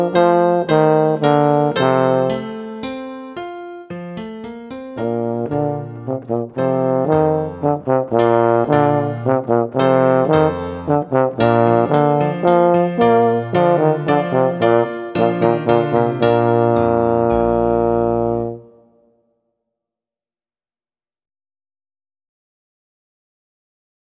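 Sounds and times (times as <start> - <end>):
minuet solo with piano accompaniment at performance tempo: 0.0 - 19.1.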